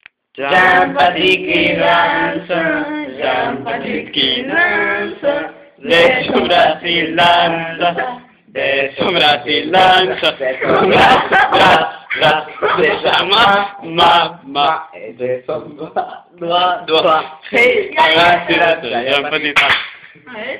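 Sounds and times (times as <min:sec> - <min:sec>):
people singing a children's song: 0:00.4 - 0:19.3
laughter: 0:10.2 - 0:13.5.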